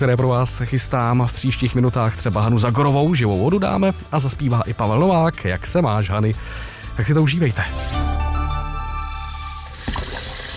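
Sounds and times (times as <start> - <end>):
speech: 0.0 - 8.2
running tap water splashing into a sink while a yogurt cup is rinsed: 9.7 - 10.5.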